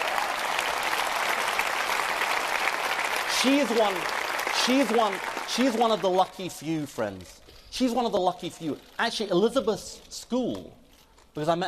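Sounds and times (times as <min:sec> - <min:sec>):
audience applause: 0:00.0 - 0:06.6
speech: 0:03.4 - 0:10.8, 0:11.4 - 0:11.6.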